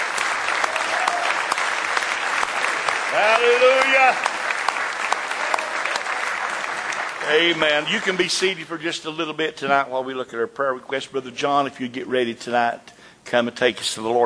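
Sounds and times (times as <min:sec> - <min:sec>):
audience applauding with hand claps: 0:00.0 - 0:08.9
speech: 0:03.1 - 0:04.4, 0:07.3 - 0:14.2.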